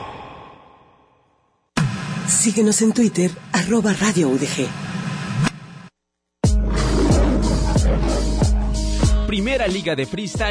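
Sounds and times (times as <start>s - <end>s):
speech: 2.3s - 4.9s, 9.6s - 10.4s
big cat roar sound effect: 6.6s - 9.0s.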